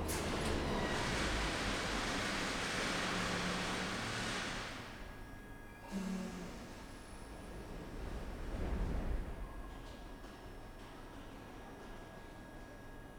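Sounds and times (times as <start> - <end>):
air draft after a metro train: 0.0 - 5.2, 5.8 - 10.4.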